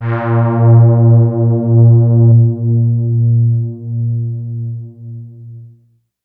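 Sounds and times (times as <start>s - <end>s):
wide stereo synthesizer music: 0.0s - 3.9s.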